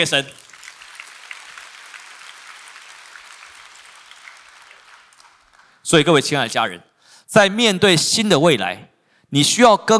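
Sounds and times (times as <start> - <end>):
speech: 0.0 - 0.4, 5.9 - 9.9
audience clapping hands: 0.0 - 5.8.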